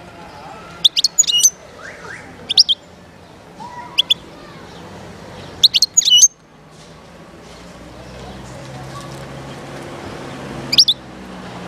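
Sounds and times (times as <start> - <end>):
wild European goldfinch singing: 0.8 - 2.9, 3.9 - 4.3, 5.4 - 6.4, 10.7 - 11.0.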